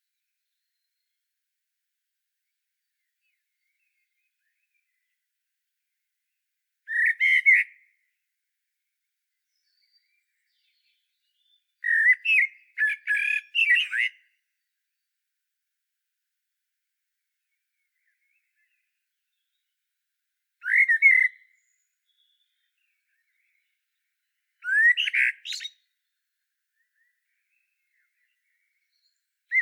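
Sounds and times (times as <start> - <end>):
common blackbird singing: 6.9 - 7.8, 9.5 - 14.3, 20.6 - 25.9, 26.8 - 29.5.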